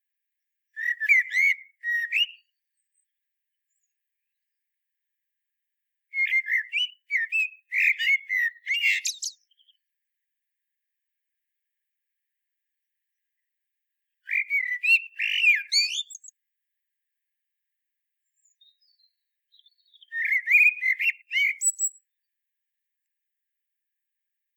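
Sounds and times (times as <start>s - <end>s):
common blackbird singing: 0.8s - 2.6s, 6.1s - 9.8s, 14.2s - 16.3s, 18.4s - 22.2s.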